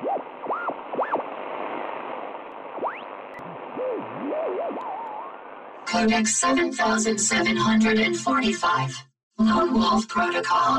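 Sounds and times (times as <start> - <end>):
radio static blasting through a speaker: 0.0 - 8.9
speech: 4.0 - 5.0, 5.9 - 10.7.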